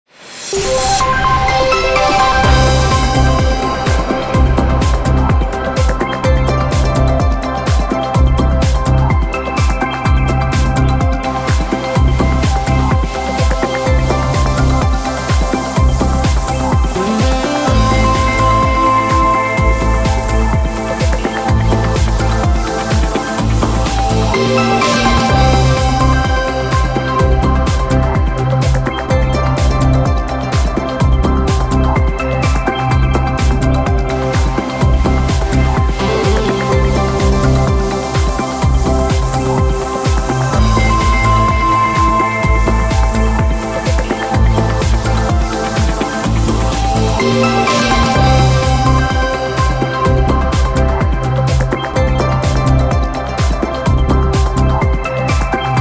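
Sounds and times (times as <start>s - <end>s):
hot weather bumper music bed: 0.6s - 55.7s.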